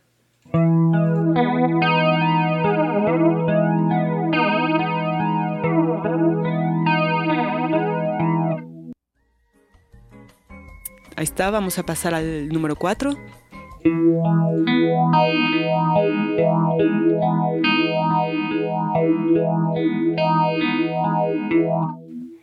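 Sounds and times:
electric guitar chords through distortion and chorus effects: 0.5 - 9.0, 13.7 - 22.4
speech: 11.3 - 17.8, 18.9 - 22.0.

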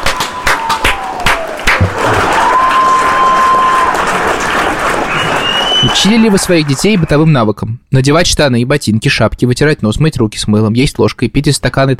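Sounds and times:
bright gliding whistles: 0.0 - 4.1, 5.0 - 7.1
crowd applause: 0.0 - 7.3
speech: 6.0 - 11.9.

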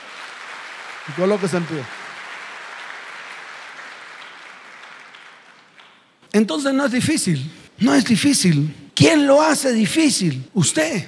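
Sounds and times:
audience applauding: 0.0 - 6.3
speech: 1.0 - 2.0, 6.3 - 11.0.

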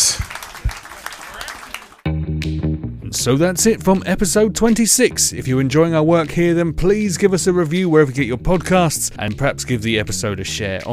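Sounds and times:
round of applause: 0.0 - 2.1
speech: 3.1 - 10.9.

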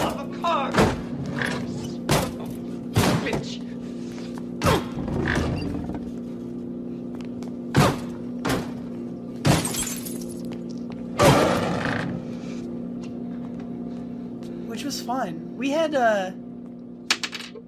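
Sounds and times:
steady low engine-like hum: 0.0 - 17.1
car smashing through glass windows: 9.5 - 10.5
speech: 15.1 - 16.4.

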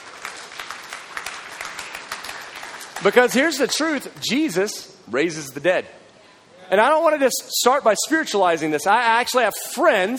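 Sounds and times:
crowd clapping: 0.0 - 4.4
speech: 3.0 - 6.0, 6.7 - 10.1.

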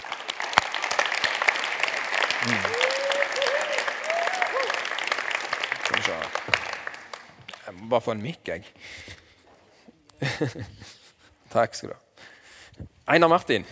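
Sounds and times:
audience applauding: 0.0 - 7.7
speech: 2.4 - 2.8, 7.8 - 9.2, 10.4 - 12.0, 13.1 - 13.7
laughter: 10.2 - 11.3.

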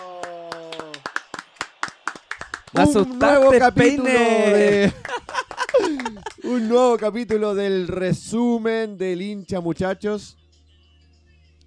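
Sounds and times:
laughter: 0.0 - 1.4, 2.4 - 8.0
hands clapping: 0.0 - 7.6
speech: 2.7 - 5.0, 5.8 - 10.4.

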